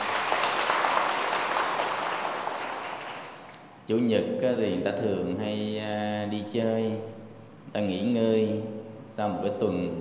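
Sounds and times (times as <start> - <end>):
audience applause: 0.0 - 3.5
speech: 3.9 - 9.9.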